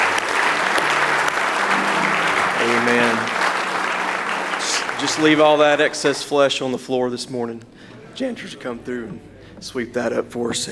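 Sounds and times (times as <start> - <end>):
audience hand clapping applause: 0.0 - 6.5
speech: 2.7 - 3.3, 5.0 - 10.7.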